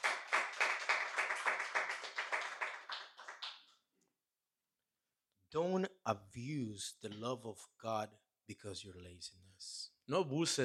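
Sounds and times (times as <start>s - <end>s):
church congregation clapping hands in praise to God: 0.0s - 3.7s
speech: 5.5s - 10.6s.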